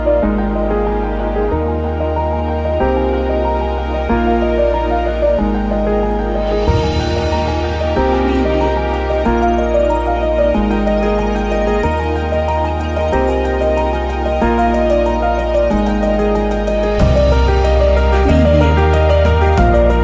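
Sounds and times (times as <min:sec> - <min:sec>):
piano: 0:00.0 - 0:20.0.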